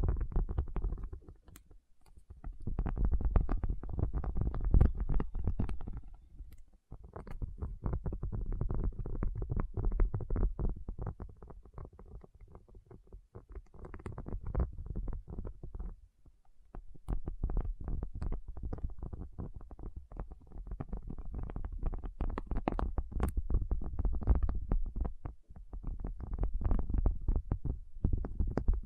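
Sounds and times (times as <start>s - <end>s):
rapid muffled tapping: 0.0s - 16.0s, 16.7s - 28.8s.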